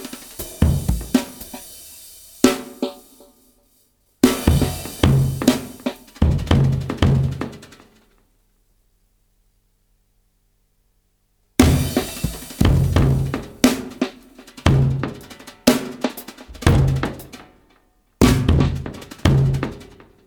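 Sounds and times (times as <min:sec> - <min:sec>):
drum solo: 0:00.0 - 0:08.0, 0:11.6 - 0:17.6, 0:18.2 - 0:20.2.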